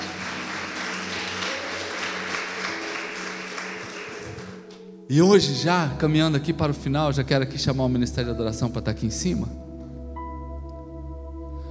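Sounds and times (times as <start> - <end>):
audience applauding loudly: 0.0 - 4.7
speech: 5.1 - 9.7.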